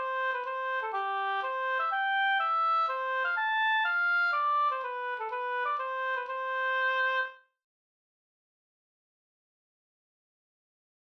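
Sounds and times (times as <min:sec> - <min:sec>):
hamburska folk dance tune in C major: 0:00.0 - 0:07.4.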